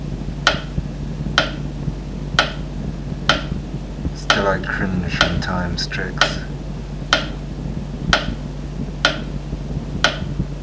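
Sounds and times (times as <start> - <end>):
low hum: 0.0 - 10.6
clock ticking: 0.4 - 0.8, 1.4 - 1.6, 2.4 - 2.6, 3.3 - 3.6, 4.2 - 6.5, 7.1 - 7.4, 8.1 - 8.4, 9.0 - 9.3, 10.0 - 10.4
speech: 4.5 - 6.5.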